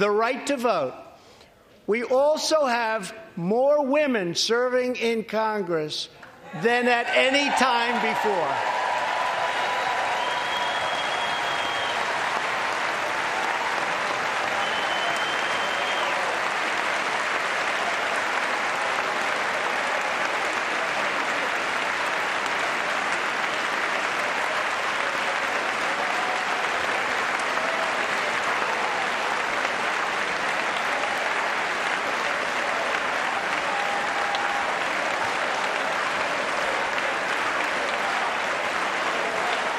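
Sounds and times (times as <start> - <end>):
speech: 0.0 - 1.0, 1.9 - 8.8
sustained applause from a large chamber audience: 6.6 - 39.7.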